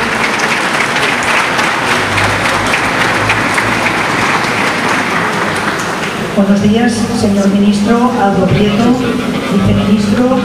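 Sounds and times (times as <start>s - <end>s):
audience applause: 0.0s - 6.4s
speech: 6.4s - 10.4s.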